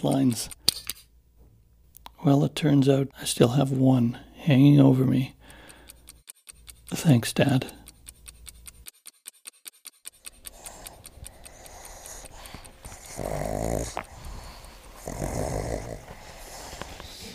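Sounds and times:
speech: 0.0 - 0.6, 2.2 - 5.4, 6.9 - 7.8
clicking scratches: 5.5 - 17.3
pugs snorting, grunting and growling playfully: 10.3 - 17.3.

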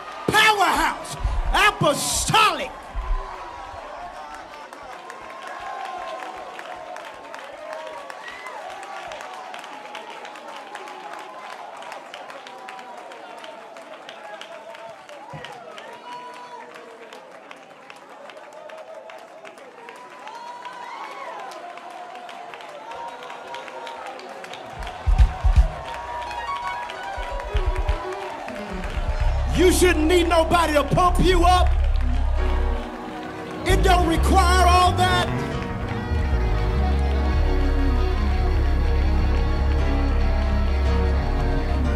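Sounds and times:
audience clapping: 0.0 - 41.9
speech: 1.0 - 2.8, 30.4 - 31.8, 33.8 - 35.4
feet stomping: 24.8 - 26.2.

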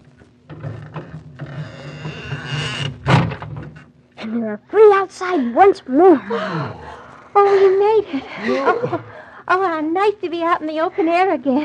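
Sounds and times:
squeaky door opening: 0.6 - 3.4
speech: 4.3 - 6.8, 7.4 - 11.6
laughter: 7.4 - 9.3.

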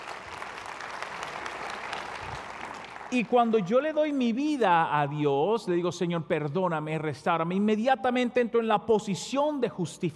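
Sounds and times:
audience applause: 0.0 - 3.5
speech: 3.1 - 10.1.

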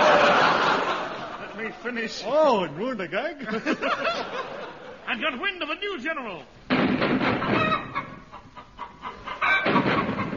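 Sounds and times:
laughter: 0.0 - 2.0, 3.4 - 5.1
speech: 1.7 - 7.6
British artillery shelling: 6.7 - 7.9
chickens clucking: 7.3 - 10.3.

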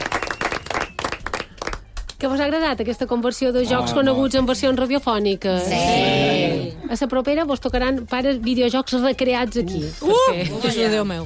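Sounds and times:
audience applauding participants after a round of games: 0.0 - 1.8
speech: 2.2 - 11.2.

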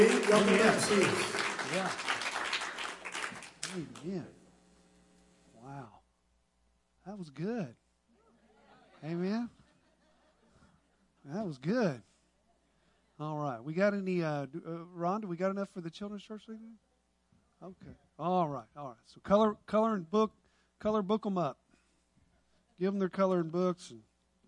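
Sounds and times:
speech: 0.0 - 2.2, 3.7 - 4.4, 7.1 - 7.8, 9.0 - 9.6, 11.2 - 12.1, 13.2 - 16.8, 17.6 - 21.6, 22.8 - 24.1
church audience applauding: 0.0 - 4.2.

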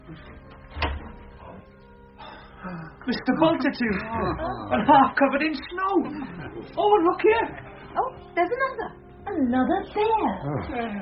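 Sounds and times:
door being opened: 0.5 - 1.3
speech: 2.7 - 11.0.

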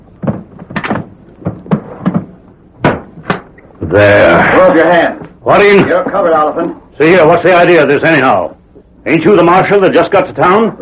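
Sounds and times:
wooden box lid being shut: 0.2 - 3.5
speech: 3.9 - 10.8.

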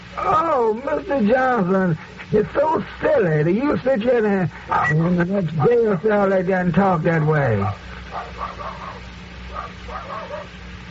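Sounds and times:
speech: 0.2 - 8.6
dog barking: 4.7 - 6.0, 7.7 - 10.6.

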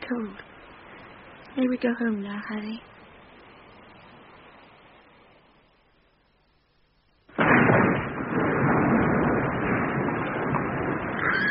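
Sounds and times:
speech: 0.1 - 0.5, 1.6 - 2.9
tower collapsing: 7.3 - 11.4.

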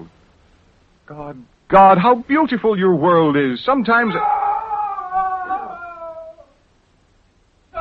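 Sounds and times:
speech: 1.1 - 4.3
man screaming: 4.0 - 6.6.

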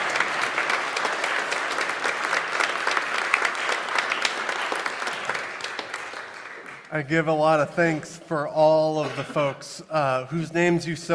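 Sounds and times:
audience applause: 0.0 - 7.5
speech: 6.9 - 11.1.

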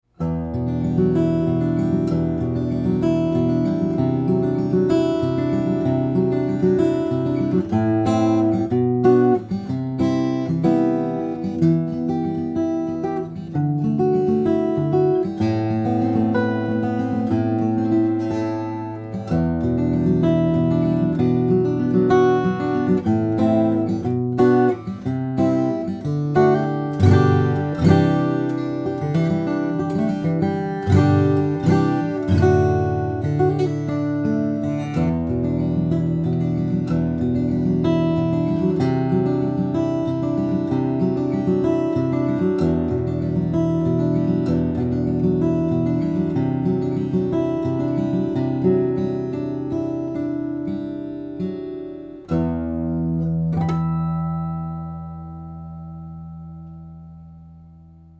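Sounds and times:
flattop steel string guitars: 0.5 - 57.4.

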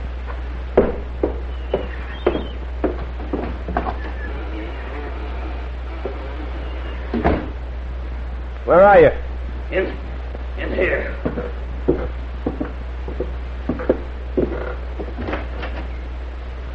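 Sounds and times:
steady low hum: 0.0 - 16.7
front door being handled and opened: 0.8 - 7.6
speech: 8.7 - 10.0.

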